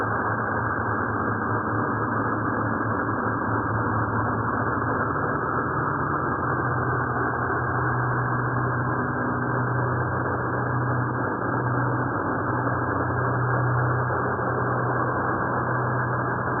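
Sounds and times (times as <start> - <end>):
dark ambient drone: 0.0 - 16.5.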